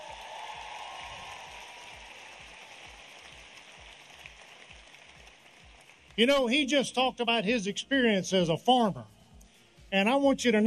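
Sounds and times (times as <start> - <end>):
crowd applauding at a political rally: 0.0 - 6.6
speech: 6.2 - 9.2, 9.9 - 10.6.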